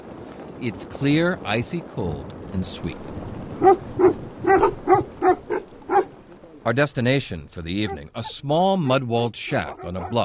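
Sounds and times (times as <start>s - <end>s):
speech: 0.6s - 5.4s, 6.6s - 10.2s
Tibetan mastiffs barking: 3.6s - 6.2s, 7.8s - 8.3s, 9.5s - 10.2s.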